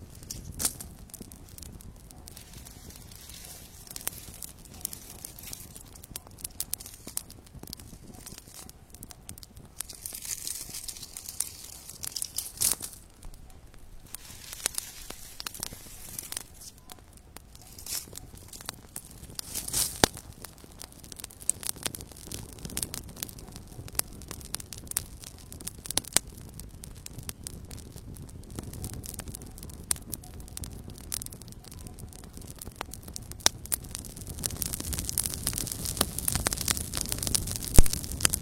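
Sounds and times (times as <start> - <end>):
calm campfire crackling at night: 0.0 - 38.3.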